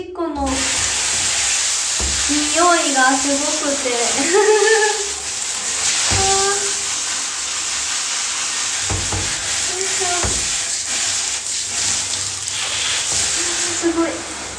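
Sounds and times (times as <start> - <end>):
speech: 0.0 - 0.9, 2.3 - 5.1
thumps: 0.4 - 3.8, 5.7 - 7.2, 8.8 - 11.4
water rinsing urine off a bathroom floor: 0.4 - 14.5.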